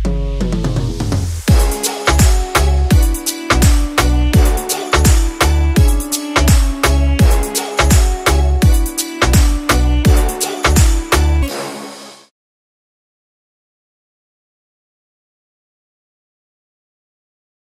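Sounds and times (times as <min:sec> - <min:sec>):
Haryanvi DJ song: 0:00.1 - 0:12.2.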